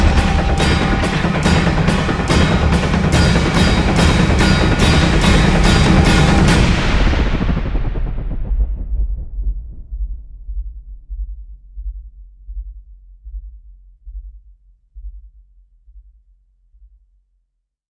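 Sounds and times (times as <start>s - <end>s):
drums: 0.0s - 12.8s.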